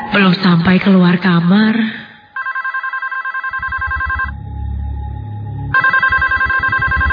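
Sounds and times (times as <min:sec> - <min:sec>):
speech: 0:00.2 - 0:02.0
telephone ringing: 0:02.3 - 0:04.3, 0:05.7 - 0:07.1.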